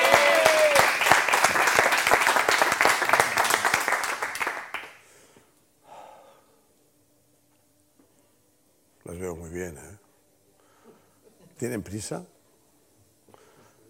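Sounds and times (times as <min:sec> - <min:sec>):
audience applause: 0:00.0 - 0:05.0
speech: 0:11.6 - 0:12.3.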